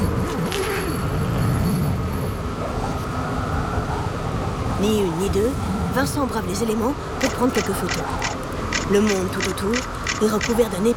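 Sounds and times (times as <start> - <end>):
strong howling blizzard wind: 0.0 - 10.9
speech: 4.8 - 10.9.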